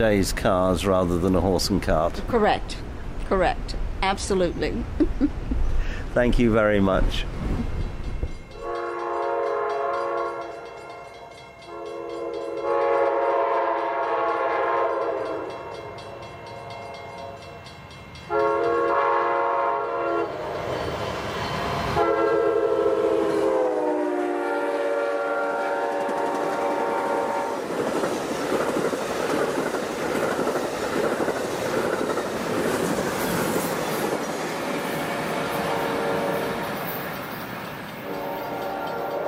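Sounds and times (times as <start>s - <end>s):
speech: 0.0s - 5.4s, 6.1s - 7.7s
train running on continuously welded track: 4.6s - 39.2s
multi-tone train horn blasts: 8.5s - 17.5s, 18.3s - 20.5s, 21.9s - 27.6s, 35.0s - 36.8s, 38.0s - 39.2s.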